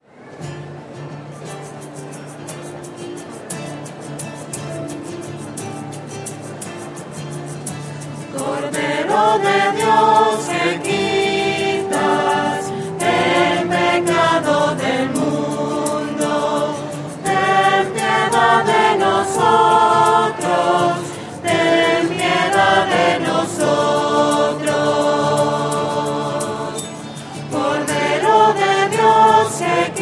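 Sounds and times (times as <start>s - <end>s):
voices singing: 8.2s - 30.0s.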